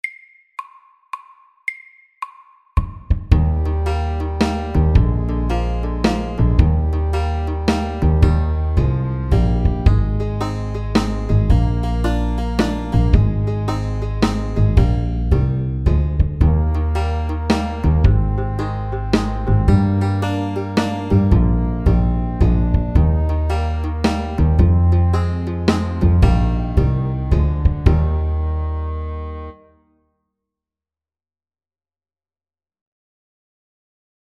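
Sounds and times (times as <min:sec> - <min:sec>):
medium country shuffle beat at 110 BPM: 0:02.8 - 0:28.4.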